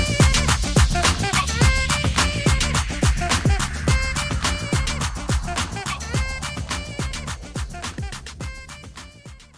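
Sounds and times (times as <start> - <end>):
old school epic twerk drum beat: 0.0 - 9.5.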